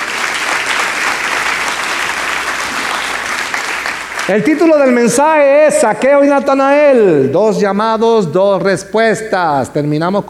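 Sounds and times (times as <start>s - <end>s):
audience applause: 0.0s - 5.2s
speech: 4.3s - 10.2s.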